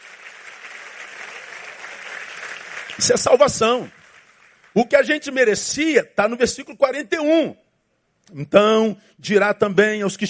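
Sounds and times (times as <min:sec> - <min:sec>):
audience applause: 0:00.0 - 0:04.8
speech: 0:03.0 - 0:04.0, 0:04.8 - 0:07.6, 0:08.3 - 0:10.2.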